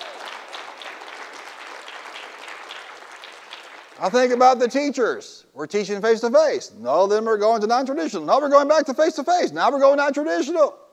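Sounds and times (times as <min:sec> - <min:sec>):
audience hand clapping: 0:00.0 - 0:04.7
speech: 0:04.0 - 0:10.8.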